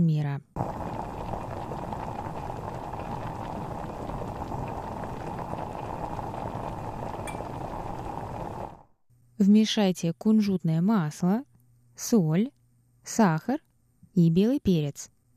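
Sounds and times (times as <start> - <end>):
speech: 0.0 - 0.9, 9.4 - 15.2
chicken broth boiling in a medium soup pot: 0.6 - 9.0.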